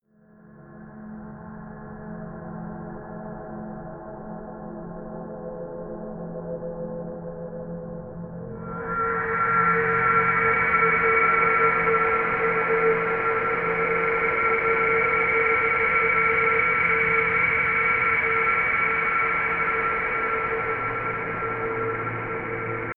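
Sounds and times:
synth pad: 8.5 - 22.9.

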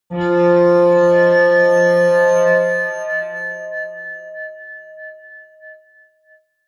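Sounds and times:
atmospheric feedback synthesizer drones: 0.1 - 4.2.

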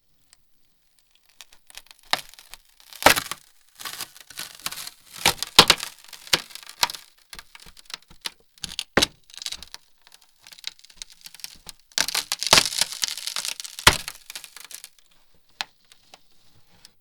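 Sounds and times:
low wood splintering: 1.7 - 15.0.

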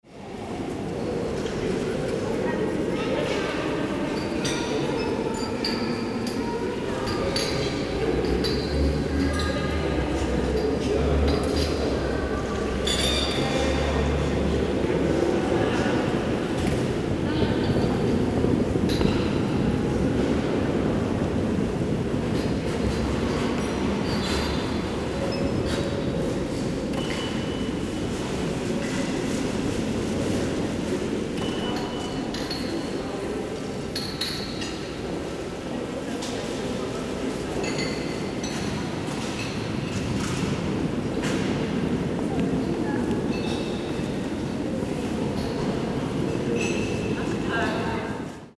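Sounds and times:
railway station restaurant ambience: 0.1 - 48.5.

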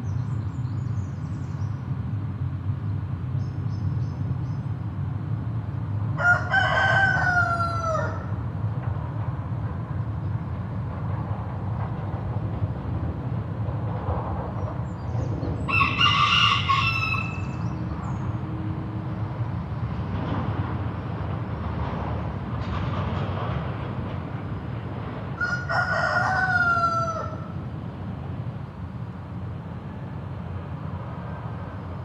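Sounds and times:
road traffic rumble: 0.0 - 32.0
rooster crowing: 6.2 - 8.4, 15.6 - 17.8, 25.4 - 27.6.

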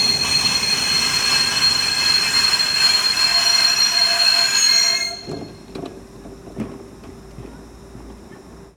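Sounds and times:
train stopping: 0.0 - 6.5.

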